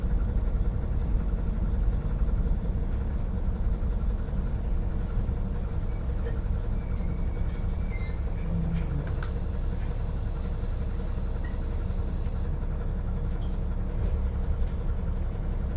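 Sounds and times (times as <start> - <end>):
train running on the Hakodate Main Line: 0.0 - 15.7.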